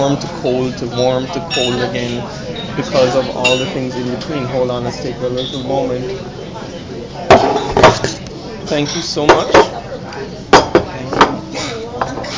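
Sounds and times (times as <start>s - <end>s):
speech: 0.0s - 6.4s, 8.7s - 9.8s
dishes and cutlery clinking as breakfast is served at the table: 1.0s - 4.4s, 7.3s - 9.8s, 10.5s - 12.3s.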